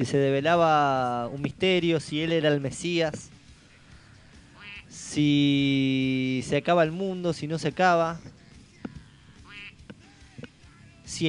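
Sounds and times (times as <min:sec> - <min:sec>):
speech: 0:00.0 - 0:03.4, 0:04.9 - 0:08.4
Donald Duck cartoon squawk quacking sound effect: 0:04.5 - 0:05.0, 0:09.4 - 0:09.9.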